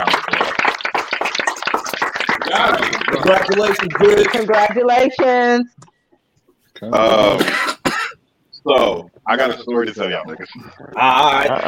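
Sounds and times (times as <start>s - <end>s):
round of applause: 0.0s - 4.8s
speech: 2.6s - 5.8s, 6.8s - 7.6s, 8.6s - 11.6s.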